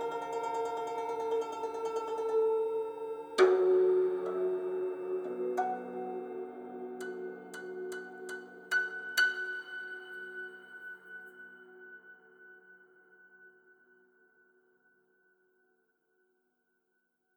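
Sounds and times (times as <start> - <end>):
guzheng playing: 0.0 - 11.2.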